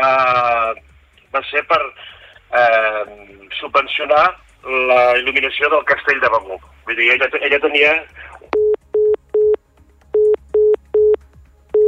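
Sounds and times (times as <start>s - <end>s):
speech: 1.3s - 8.6s
telephone busy tone after a call drops mid-interview: 8.6s - 9.6s, 10.2s - 11.8s.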